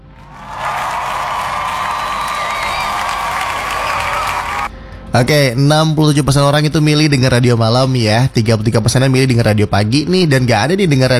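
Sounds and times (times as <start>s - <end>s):
crowd applauding: 0.0s - 4.7s
speech: 5.2s - 11.1s.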